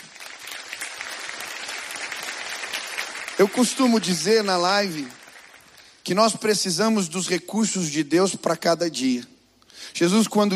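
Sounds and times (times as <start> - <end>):
round of applause from a group: 0.0 - 6.0
speech: 3.4 - 5.2, 6.1 - 9.3, 9.9 - 10.5.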